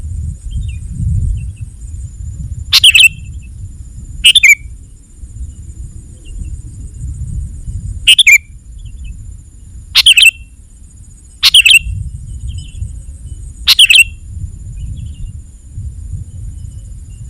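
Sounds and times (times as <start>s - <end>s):
sooty-headed bulbul song: 2.8s - 3.2s, 4.3s - 4.6s, 8.1s - 8.4s, 10.0s - 10.4s, 11.4s - 11.8s, 13.7s - 14.1s.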